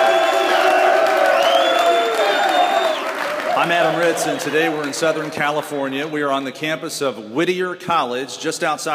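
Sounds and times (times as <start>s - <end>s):
audience applause: 0.0s - 5.8s
speech: 3.6s - 8.9s.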